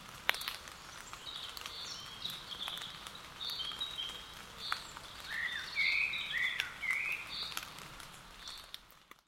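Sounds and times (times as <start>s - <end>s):
common blackbird Turdus merula singing: 1.0s - 7.6s.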